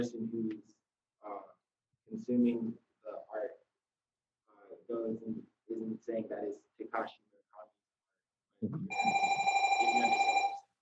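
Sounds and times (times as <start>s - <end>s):
speech: 0.0s - 1.4s, 2.1s - 2.8s, 4.9s - 7.3s, 8.6s - 10.4s
bell ringing: 8.9s - 10.6s.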